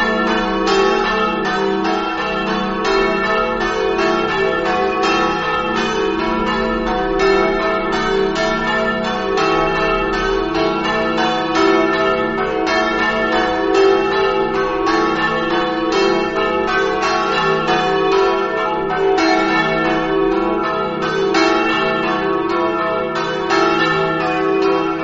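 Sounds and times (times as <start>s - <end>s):
bells ringing in Flambruzzo: 0.0s - 25.0s.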